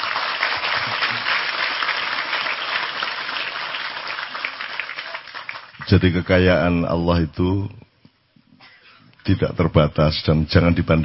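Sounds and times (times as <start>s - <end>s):
audience applauding loudly: 0.0s - 6.1s
speech: 5.9s - 7.8s, 9.3s - 11.0s.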